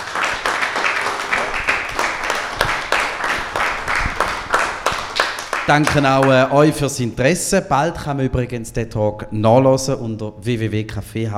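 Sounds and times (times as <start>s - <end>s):
audience applause: 0.0s - 6.8s
speech: 5.7s - 11.3s.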